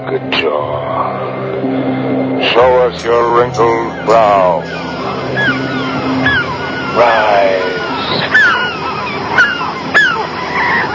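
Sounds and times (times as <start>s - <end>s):
speech: 0.0s - 4.8s
birds honking: 2.5s - 10.9s.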